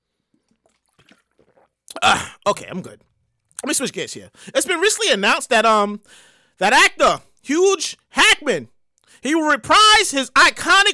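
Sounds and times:
person sipping water: 0.0s - 3.6s
speech: 2.0s - 10.9s.

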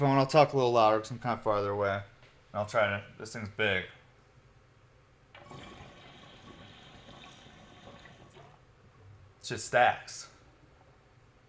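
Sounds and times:
speech: 0.0s - 4.0s, 9.4s - 10.3s
dry pull through water bubbler pipe: 5.3s - 9.1s.

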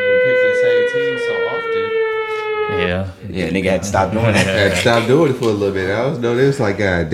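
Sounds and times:
alarm siren: 0.0s - 3.2s
speech: 2.9s - 7.1s
laughter: 3.9s - 5.7s.

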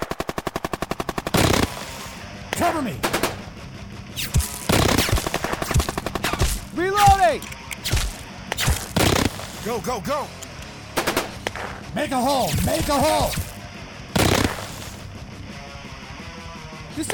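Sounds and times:
gunfire in a desert firefight at midday: 0.0s - 3.5s, 4.2s - 9.8s, 10.8s - 13.6s, 14.2s - 15.1s
speech: 2.7s - 3.2s, 4.2s - 4.5s, 6.8s - 7.6s, 9.6s - 10.4s, 11.9s - 13.4s, 17.0s - 17.1s.

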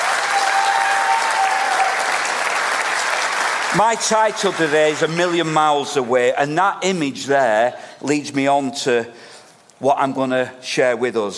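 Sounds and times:
audience applause: 0.0s - 5.6s
speech: 3.7s - 9.2s, 9.8s - 11.3s.

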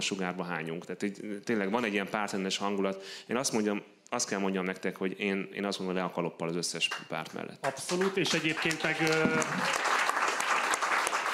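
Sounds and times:
speech: 0.0s - 10.0s
audience applause: 7.7s - 11.3s.

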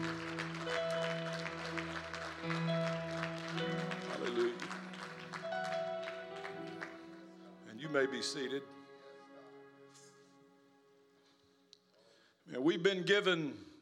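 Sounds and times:
audience clapping: 0.0s - 8.1s
speech: 8.0s - 8.8s, 12.7s - 13.7s.

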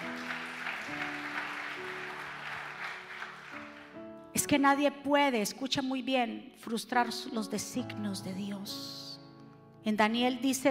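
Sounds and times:
audience applause: 0.0s - 4.0s
speech: 4.4s - 9.0s, 9.8s - 10.6s.

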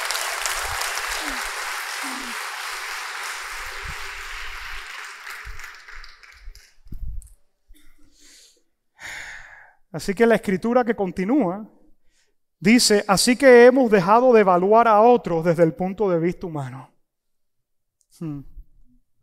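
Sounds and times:
large crowd applauding: 0.0s - 6.8s
speech: 10.0s - 11.8s, 12.6s - 16.9s, 18.2s - 18.5s.

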